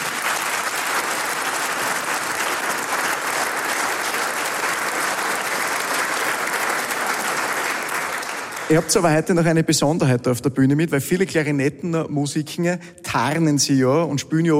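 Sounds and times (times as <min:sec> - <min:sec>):
audience applause: 0:00.0 - 0:09.3
speech: 0:08.7 - 0:14.5.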